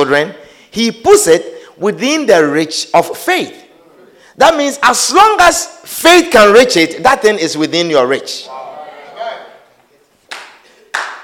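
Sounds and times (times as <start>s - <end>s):
speech: 0.0s - 3.6s, 4.4s - 8.6s
audience clapping: 10.2s - 11.2s.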